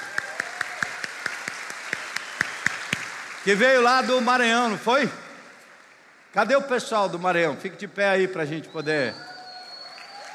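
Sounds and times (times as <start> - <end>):
audience applauding a contestant's mother: 0.0 - 6.4, 9.3 - 10.3
speech: 3.4 - 5.2, 6.3 - 9.3.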